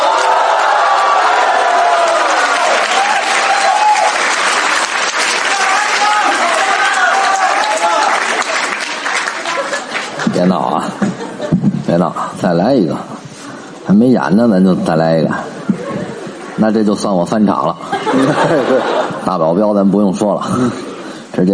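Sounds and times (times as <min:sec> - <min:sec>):
audience applause: 0:00.0 - 0:10.9
laughter: 0:09.2 - 0:11.8, 0:15.4 - 0:16.6, 0:17.6 - 0:19.6, 0:20.4 - 0:21.1
speech: 0:12.5 - 0:13.1, 0:13.9 - 0:15.4, 0:16.6 - 0:21.5.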